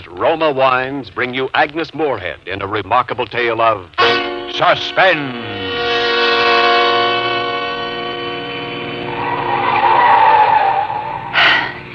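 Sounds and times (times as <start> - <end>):
speech: 0.1 - 5.7
car engine revving driven fast up a steep winding mountain road: 6.8 - 11.9
tire squeal: 8.6 - 11.8.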